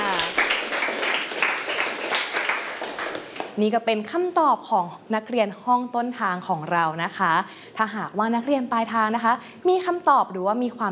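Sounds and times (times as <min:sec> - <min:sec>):
class applauding a classmate: 0:00.0 - 0:03.6
speech: 0:03.6 - 0:10.9.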